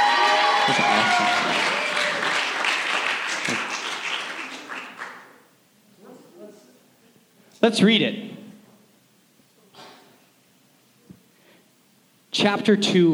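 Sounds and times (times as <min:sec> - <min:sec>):
crowd applauding loudly: 0:00.0 - 0:05.5
speech: 0:00.7 - 0:01.8, 0:07.6 - 0:08.3, 0:12.4 - 0:13.1.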